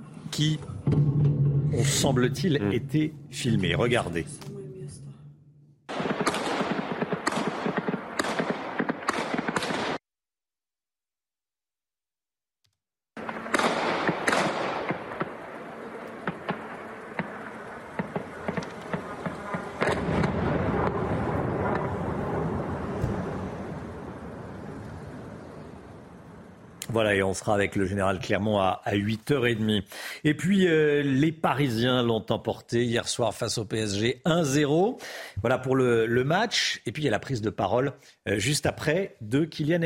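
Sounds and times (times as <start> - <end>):
speech: 0.3 - 4.6, 27.2 - 39.8
dense crackling blasts and rattling gunfire-like bursts: 5.9 - 10.0, 13.2 - 27.5
explosions from kamikaze drones: 5.9 - 10.0, 13.2 - 26.4.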